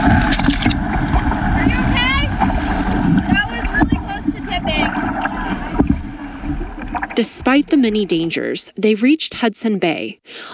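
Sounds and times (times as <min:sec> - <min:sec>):
continuous rush of water and splashing: 0:00.0 - 0:08.1
canoe paddling through large waves on a lake: 0:00.0 - 0:08.4
wind noise: 0:00.0 - 0:08.4
voices calling out: 0:01.6 - 0:02.5, 0:03.2 - 0:05.8, 0:07.1 - 0:08.6
speech: 0:07.2 - 0:10.5.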